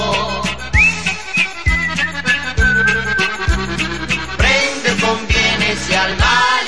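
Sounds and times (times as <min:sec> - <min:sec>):
band accompaniment with steady bass beats: 0:00.0 - 0:06.6
whistled melody in a cheerful Italian waltz song: 0:00.1 - 0:04.3.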